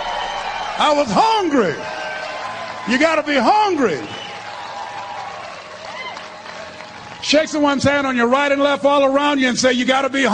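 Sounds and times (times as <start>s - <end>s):
audience applause: 0.0s - 8.2s
speech: 0.8s - 1.9s, 2.8s - 4.2s, 7.3s - 10.3s.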